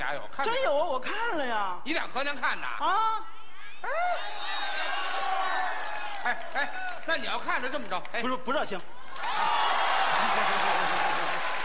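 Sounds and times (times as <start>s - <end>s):
speech: 0.2s - 4.9s, 6.2s - 9.4s, 10.2s - 11.1s
audience applause: 4.7s - 7.3s, 9.1s - 11.6s.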